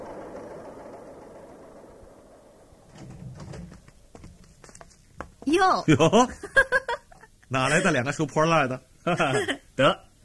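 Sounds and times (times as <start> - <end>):
cargo trucks and walking tractors driving past: 0.0 - 4.1
speech: 5.5 - 6.5, 7.5 - 10.0
laughter: 6.3 - 8.0, 9.1 - 9.6.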